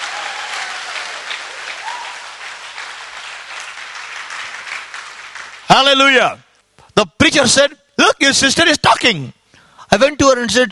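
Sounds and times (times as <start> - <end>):
audience clapping: 0.0 - 6.2
speech: 5.7 - 6.4, 7.0 - 10.7.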